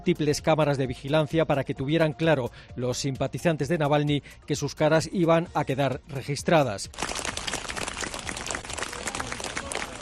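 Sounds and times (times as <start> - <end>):
speech: 0.0 - 7.4
crowd applauding: 7.0 - 10.0.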